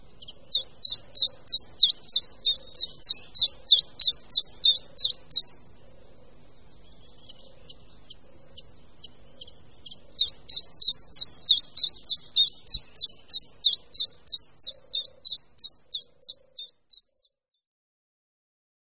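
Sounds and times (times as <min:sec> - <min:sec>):
common chiffchaff song: 0:00.0 - 0:05.8, 0:07.8 - 0:17.0.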